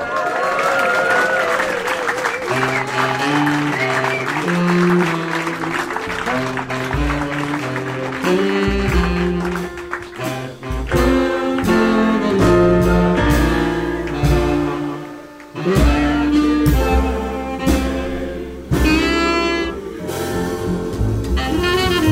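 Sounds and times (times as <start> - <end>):
audience applause welcoming a performer on his birthday at a concert: 0.0 - 12.5, 13.3 - 15.9
instrumental music: 2.4 - 22.1.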